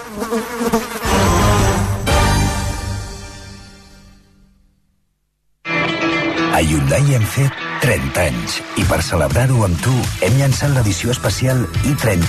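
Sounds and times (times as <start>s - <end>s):
fly buzzing: 0.0s - 2.7s
speech: 0.1s - 1.0s, 6.6s - 12.2s.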